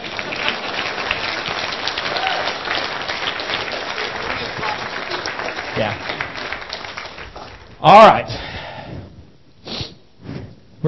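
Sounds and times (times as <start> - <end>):
audience applause: 0.0 - 8.2
speech: 5.8 - 6.1, 7.8 - 8.5.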